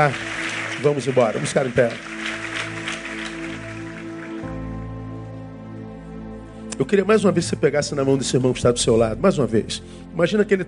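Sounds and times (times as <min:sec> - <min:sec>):
speech: 0:00.0 - 0:02.2, 0:06.8 - 0:10.6
audience clapping: 0:00.0 - 0:04.9
sustained keyboard chords: 0:00.0 - 0:10.6.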